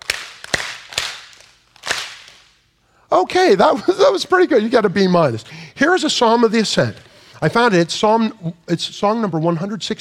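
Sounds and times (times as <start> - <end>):
rhythmic hand clapping: 0.0 - 2.6
speech: 3.1 - 9.9.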